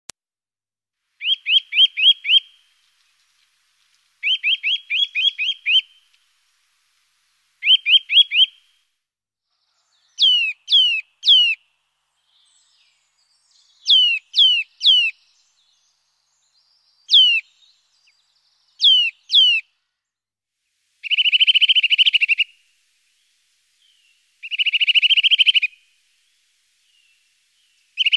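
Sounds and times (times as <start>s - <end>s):
Eurasian nuthatch calls of loud downslurred piping whistles: 1.2s - 2.8s, 4.2s - 6.2s, 7.6s - 8.7s, 9.8s - 11.6s, 13.2s - 19.7s, 21.0s - 28.1s.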